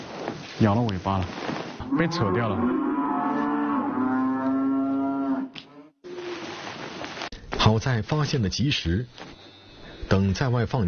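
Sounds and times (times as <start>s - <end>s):
speech: 0.6s - 2.9s, 7.7s - 9.4s, 10.1s - 10.8s
cow mooing: 1.8s - 6.3s.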